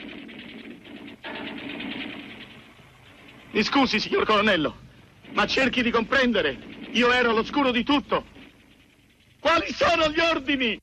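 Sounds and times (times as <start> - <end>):
rapid machine-gun fire in a war film scene: 0.0 - 10.2
speech: 3.6 - 8.3, 9.5 - 10.8.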